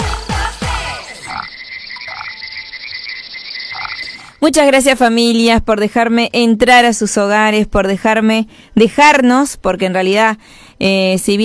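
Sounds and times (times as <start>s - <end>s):
frog croaking: 1.0s - 4.5s
speech: 4.4s - 11.4s.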